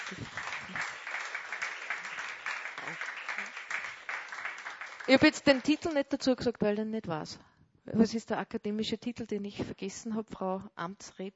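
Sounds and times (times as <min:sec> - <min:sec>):
sizable audience applauding steadily: 0:00.0 - 0:05.9
speech: 0:05.1 - 0:11.3.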